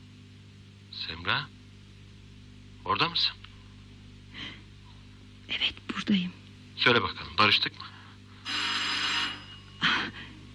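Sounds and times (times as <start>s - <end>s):
speech: 1.0s - 1.6s, 2.8s - 3.4s, 5.5s - 8.0s
doorbell ringing with a buzzy electronic tone: 8.5s - 9.9s.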